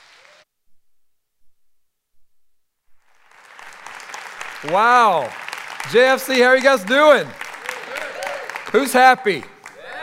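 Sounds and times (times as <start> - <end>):
crowd clapping welcoming a pastor at a church service: 3.0 - 10.0
speech: 4.6 - 7.4, 8.7 - 9.5.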